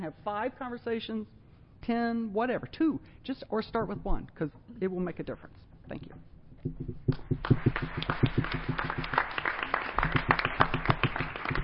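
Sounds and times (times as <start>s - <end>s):
speech: 0.0s - 9.0s
audience applause: 7.4s - 11.6s.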